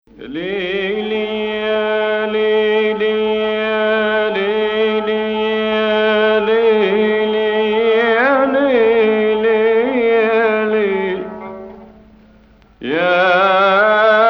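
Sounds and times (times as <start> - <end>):
Hijaz scale octave: 0.1 - 14.1.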